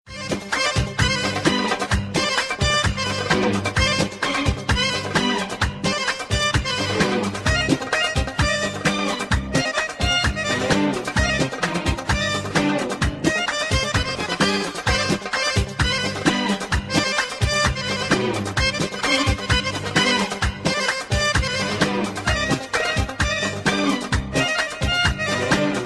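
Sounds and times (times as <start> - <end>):
Middle Eastern dance music: 0.1 - 25.8.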